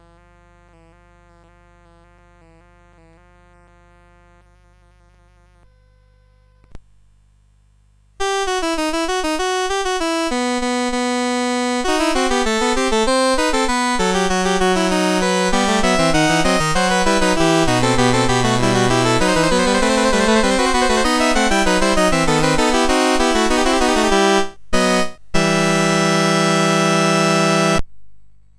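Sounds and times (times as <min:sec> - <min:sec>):
fugue in E minor: 0:08.2 - 0:27.8.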